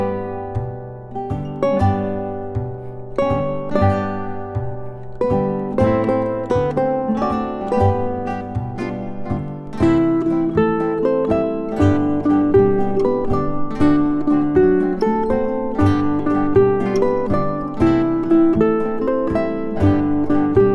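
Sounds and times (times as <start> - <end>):
ukulele trio: 0.0 - 20.7.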